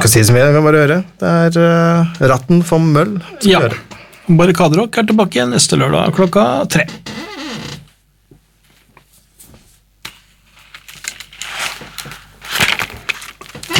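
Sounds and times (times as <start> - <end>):
speech: 0.0 - 7.3
chair creaking: 6.2 - 8.0, 10.5 - 13.7.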